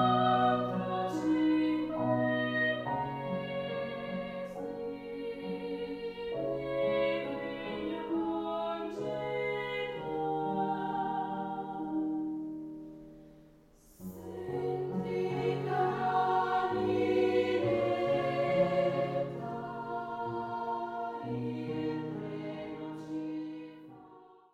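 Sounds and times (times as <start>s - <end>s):
female choir singing: 0.0s - 12.1s, 13.8s - 24.5s.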